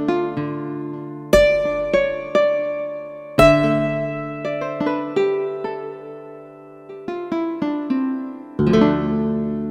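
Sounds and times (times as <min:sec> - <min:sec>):
Yamaha A4000 nylon guitar bass notes: 0:00.0 - 0:09.6.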